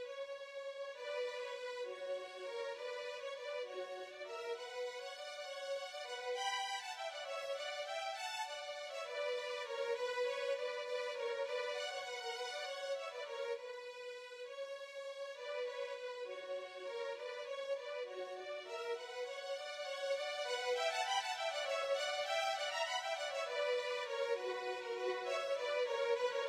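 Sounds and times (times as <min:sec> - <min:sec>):
violin duet: 0:00.8 - 0:26.4.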